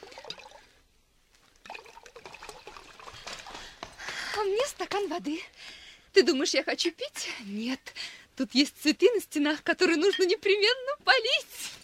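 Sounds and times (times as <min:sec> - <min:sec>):
beer pouring into a mug: 0:00.0 - 0:00.7, 0:01.6 - 0:03.2
speech: 0:04.4 - 0:11.6.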